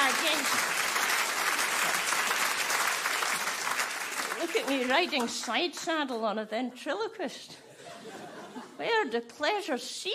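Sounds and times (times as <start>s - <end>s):
audience round of applause: 0.0s - 5.4s
speech: 4.5s - 8.2s, 8.8s - 10.1s
laughter: 7.7s - 8.8s.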